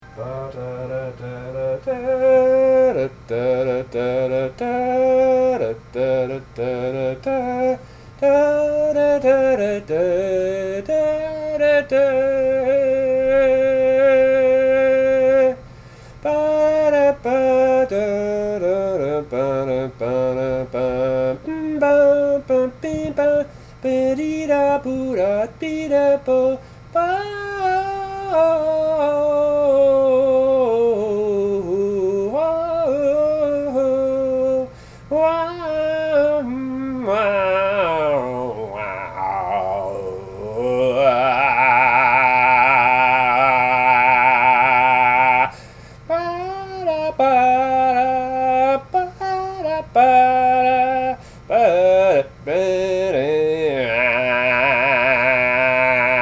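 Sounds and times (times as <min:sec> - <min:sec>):
a cappella singing: 0:00.0 - 0:56.2.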